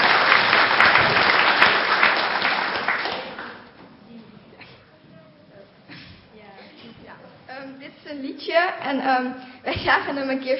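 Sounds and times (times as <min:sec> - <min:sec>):
audience clapping to encourage children of a kids' club: 0:00.0 - 0:03.8
speech: 0:08.7 - 0:10.5.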